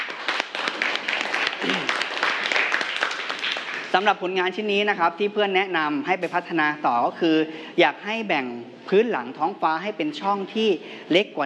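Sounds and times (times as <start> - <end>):
classroom applause: 0.0 - 4.1
speech: 4.0 - 11.4.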